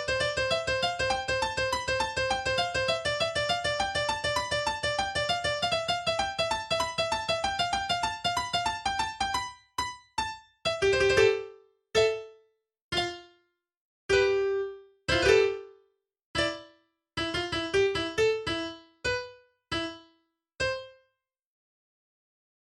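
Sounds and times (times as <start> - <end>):
noisy piano: 0.0 - 12.3, 14.1 - 15.7, 16.4 - 20.0.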